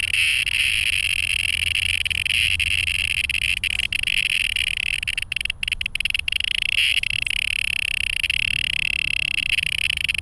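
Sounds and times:
distressed cicada: 0.0 - 10.2.

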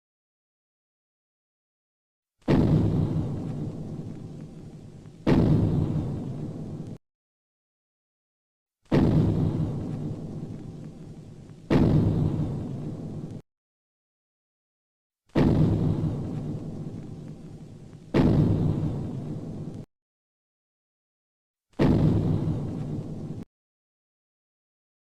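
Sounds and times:
giant stomping footsteps: 2.4 - 7.0, 8.9 - 13.4, 15.3 - 19.8, 21.8 - 23.4.

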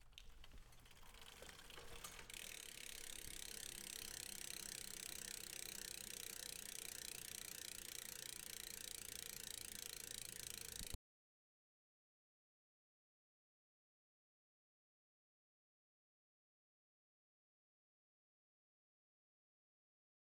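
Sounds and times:
bicycle wheel: 0.0 - 11.0.

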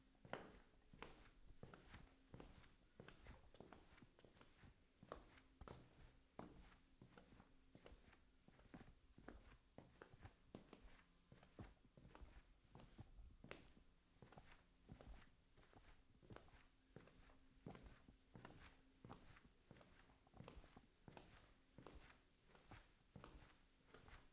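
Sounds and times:
footsteps in a hallway: 0.0 - 24.3.

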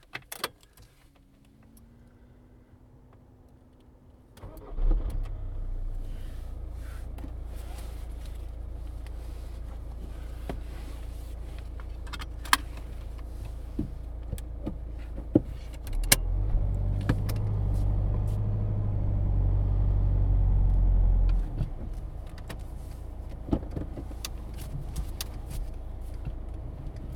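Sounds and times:
car starting and departing heard from the interior: 1.0 - 27.1.

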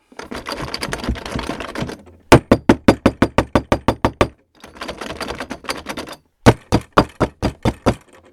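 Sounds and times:
door knob rattling: 0.2 - 8.3
knocking on door: 2.3 - 4.4, 6.5 - 8.1.

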